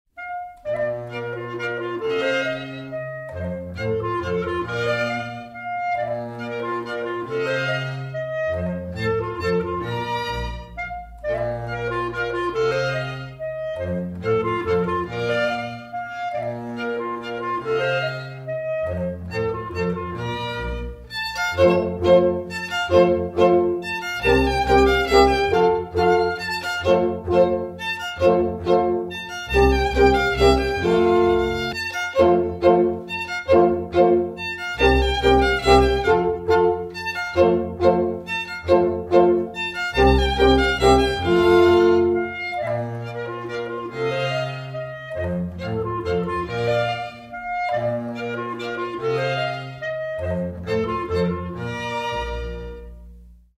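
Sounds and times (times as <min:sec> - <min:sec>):
laendler music: 0:00.2 - 0:53.5.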